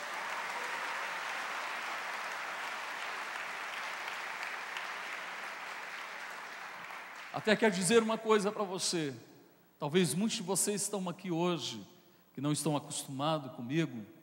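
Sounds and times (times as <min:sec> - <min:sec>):
audience applause: 0:00.0 - 0:07.6
speech: 0:07.4 - 0:14.2.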